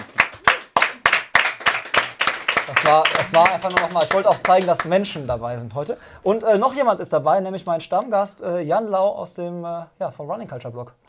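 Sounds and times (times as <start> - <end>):
audience applause: 0.0 - 4.9
speech: 2.7 - 11.0.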